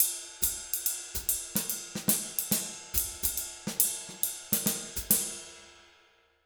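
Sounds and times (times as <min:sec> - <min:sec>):
jazz Latin drum loop: 0:00.0 - 0:05.4.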